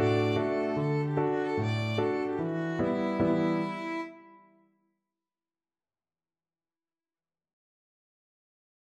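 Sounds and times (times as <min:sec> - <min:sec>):
violin melody: 0:00.0 - 0:04.6.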